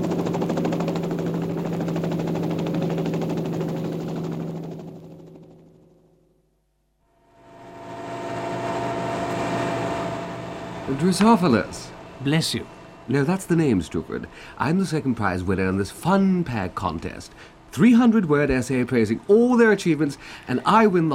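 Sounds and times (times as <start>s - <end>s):
helicopter taking off: 0.0s - 6.4s, 7.1s - 14.9s
speech: 10.9s - 21.1s.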